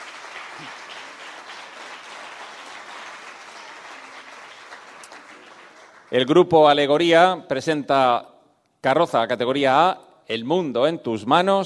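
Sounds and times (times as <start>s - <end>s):
audience applause: 0.0s - 6.2s
speech: 6.1s - 11.6s.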